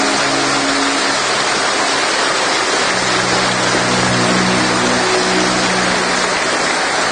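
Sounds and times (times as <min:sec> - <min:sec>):
audience applause: 0:00.0 - 0:07.1
faint low sustained tones: 0:00.0 - 0:07.1.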